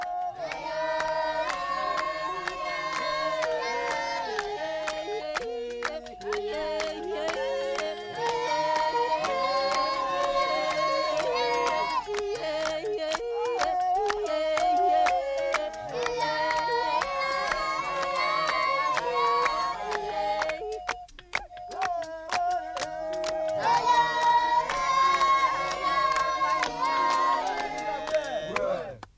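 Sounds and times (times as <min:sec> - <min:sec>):
Babenzele Pygmies polyphonic song of rejoicing after hunt: 0:00.0 - 0:29.1.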